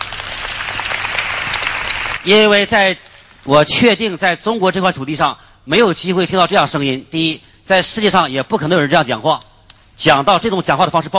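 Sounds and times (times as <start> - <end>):
audience applause: 0.0 - 3.4
speech: 2.2 - 11.1.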